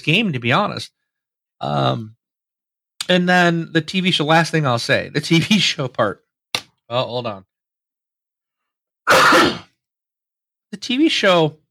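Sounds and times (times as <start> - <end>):
speech: 0.0 - 1.0, 1.6 - 2.2, 3.0 - 6.2, 6.9 - 7.5, 9.1 - 9.6, 10.7 - 11.6
cough or sneeze: 9.1 - 9.8.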